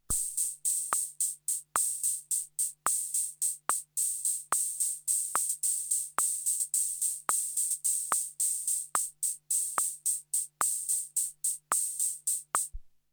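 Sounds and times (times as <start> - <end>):
TR 77 dry drum machine: 0.0 - 12.7.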